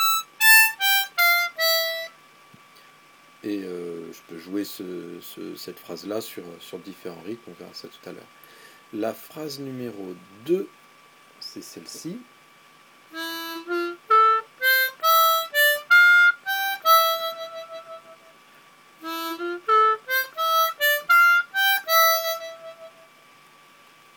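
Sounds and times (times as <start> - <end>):
musical phrases in E Phrygian: 0.0 - 2.1, 13.2 - 18.4, 19.0 - 23.1.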